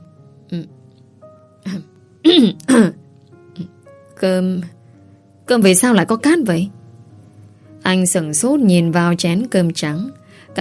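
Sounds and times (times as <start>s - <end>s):
speech: 0.5s - 0.8s, 1.6s - 3.0s, 3.6s - 4.8s, 5.5s - 6.8s, 7.9s - 10.5s
woman coughing violently: 2.3s - 3.0s.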